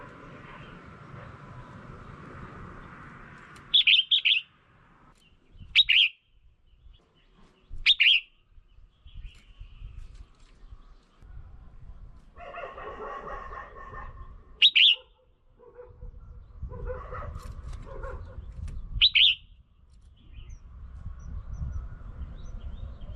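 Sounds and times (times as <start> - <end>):
Red-whiskered bulbul call notes: 3.6 - 4.6, 5.2 - 11.2, 14.6 - 15.2, 18.3 - 20.6.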